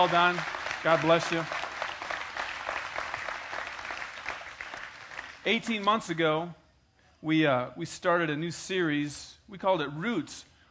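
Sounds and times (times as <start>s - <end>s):
speech: 0.0s - 1.6s, 5.4s - 6.6s, 7.2s - 10.5s
audience applauding mothers: 0.0s - 6.0s.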